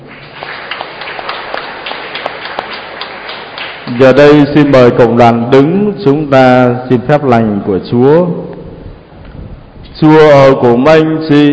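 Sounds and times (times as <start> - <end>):
audience applause: 0.0 - 5.2
speech: 3.9 - 8.5, 10.0 - 11.5.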